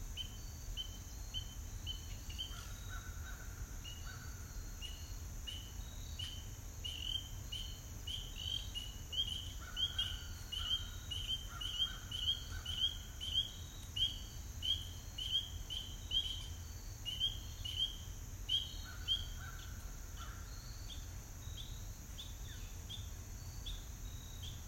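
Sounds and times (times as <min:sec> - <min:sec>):
spring peeper calls: 0:00.2 - 0:24.6.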